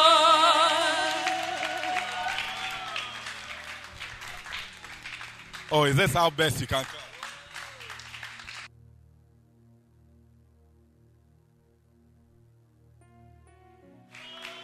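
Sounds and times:
audience clapping: 0:00.8 - 0:08.7, 0:14.1 - 0:14.6
speech: 0:05.7 - 0:07.0.

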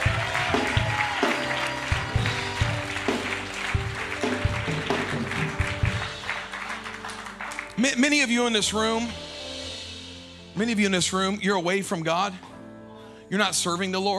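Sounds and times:
crowd clapping in praise: 0:00.0 - 0:08.3
organ or keyboard playing held chords: 0:00.0 - 0:14.1
speech: 0:07.8 - 0:09.3, 0:10.6 - 0:12.5, 0:13.3 - 0:14.1.

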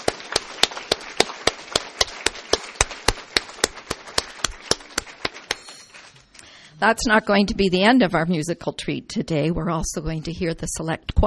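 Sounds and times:
audience applause: 0:00.0 - 0:06.4
speech: 0:06.8 - 0:11.2.

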